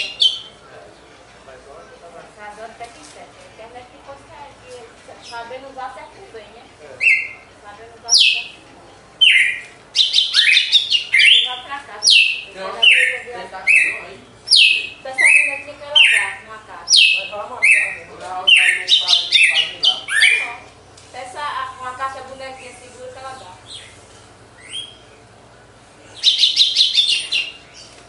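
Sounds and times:
red-cowled cardinal song: 0.0 - 0.6, 7.0 - 7.4, 8.1 - 8.6, 9.2 - 20.6, 24.6 - 25.2, 26.2 - 28.0.

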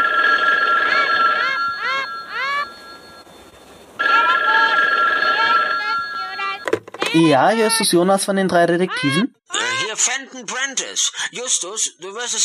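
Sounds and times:
telephone ringing: 0.0 - 7.7
speech: 7.2 - 9.4, 10.0 - 12.4.

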